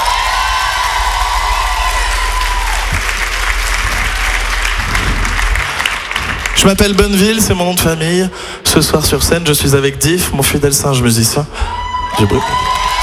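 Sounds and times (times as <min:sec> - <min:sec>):
audience applauding and cheering: 0:00.0 - 0:08.0, 0:11.6 - 0:13.0
speech: 0:06.6 - 0:13.0.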